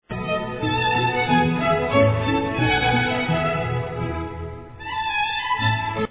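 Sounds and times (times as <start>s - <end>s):
minuet: 0.0s - 6.0s.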